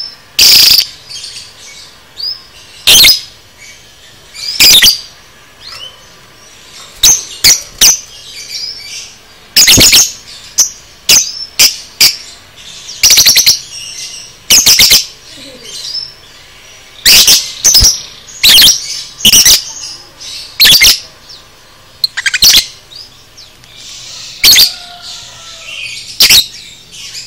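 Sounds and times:
lovebird screeching: 0.4 - 0.9, 2.8 - 3.3, 4.4 - 5.1, 9.6 - 10.2, 13.0 - 16.1, 17.0 - 21.1, 22.0 - 22.8, 23.8 - 26.7.

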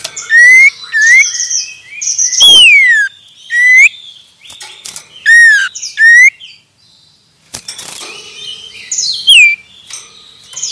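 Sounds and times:
common iora whistling song: 0.3 - 4.0, 5.2 - 6.4, 9.2 - 9.6.

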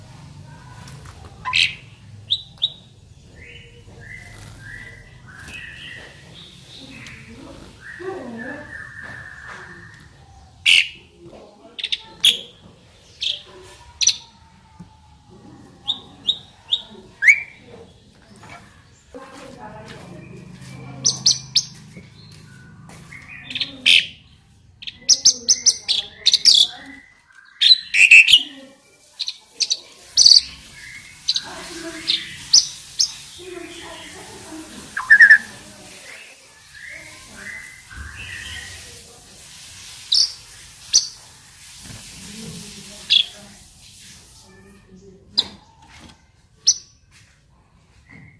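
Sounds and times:
Asian pied starling whistles, harsh chatter and high chirps: 1.4 - 11.1, 15.8 - 17.6, 20.3 - 44.6, 45.3 - 47.0.

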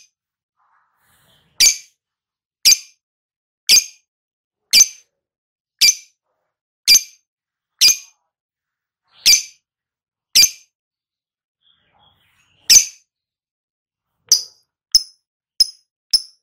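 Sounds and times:
lovebird sharp high chirps, ngekek call type: 1.6 - 1.9, 4.7 - 5.0, 5.8 - 6.1, 7.8 - 8.1, 9.1 - 9.6, 12.5 - 13.1, 14.3 - 16.4.

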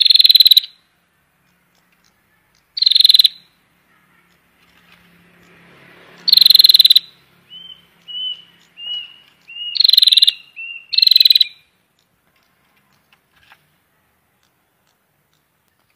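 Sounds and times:
prinia buzzy rattling call bursts: 0.0 - 0.8, 1.5 - 3.5, 4.3 - 13.7.

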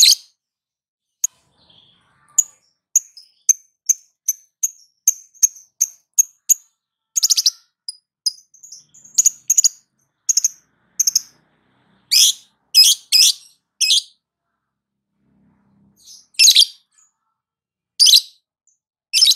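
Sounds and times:
lovebird chirping, trilling and ticking: 0.0 - 0.4, 1.2 - 11.4, 12.0 - 14.2, 16.0 - 17.3, 18.0 - 19.3.

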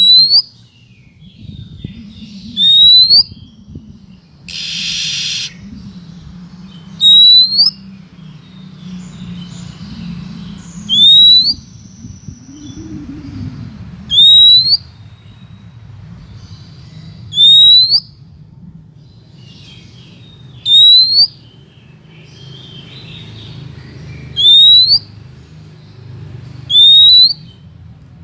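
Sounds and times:
Oriental magpie-robin rising whistle: 0.0 - 0.5, 2.5 - 3.4, 4.5 - 5.6, 7.0 - 7.8, 10.9 - 11.7, 14.1 - 14.9, 17.3 - 18.1, 20.6 - 21.4, 24.4 - 25.1, 26.7 - 27.5.

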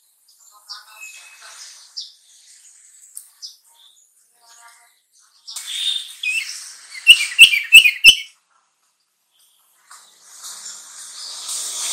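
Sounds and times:
sooty-headed bulbul chirping: 5.6 - 8.3.

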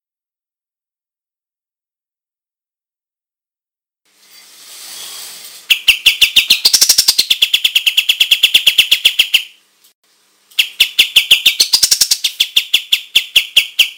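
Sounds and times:
white-shouldered triller calling: 4.9 - 9.6, 10.5 - 13.9.

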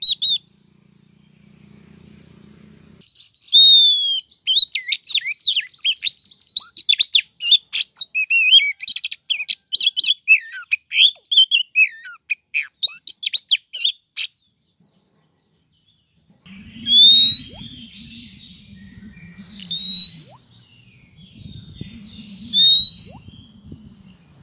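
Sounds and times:
female Oriental magpie-robin calling the male: 0.0 - 0.5, 1.1 - 14.8, 15.6 - 24.4.

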